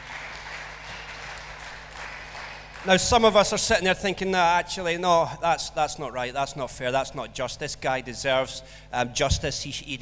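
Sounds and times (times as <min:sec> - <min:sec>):
audience applause: 0:00.0 - 0:03.0
speech: 0:02.8 - 0:10.0.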